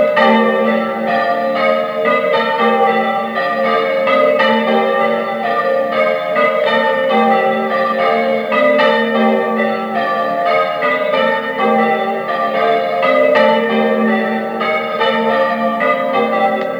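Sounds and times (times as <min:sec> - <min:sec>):
bells ringing: 0:00.0 - 0:16.7.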